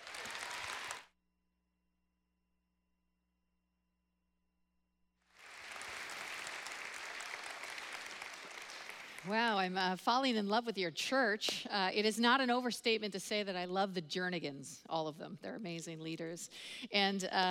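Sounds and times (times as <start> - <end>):
church congregation applauding a guest speaker: 0.0 - 1.1, 5.3 - 9.5
speech: 9.2 - 17.4.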